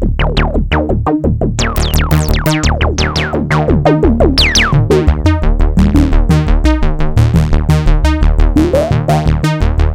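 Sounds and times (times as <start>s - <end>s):
simple sawtooth synth sequence: 0.2s - 6.8s, 8.0s - 9.8s.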